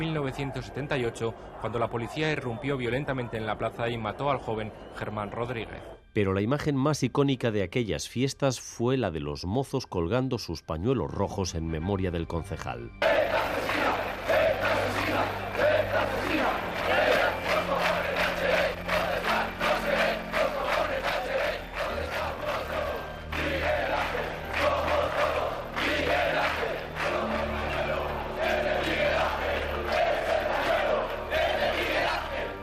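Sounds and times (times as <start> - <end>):
speech: 0.0 - 13.6
large crowd chanting a protest shout in unison: 13.0 - 32.6.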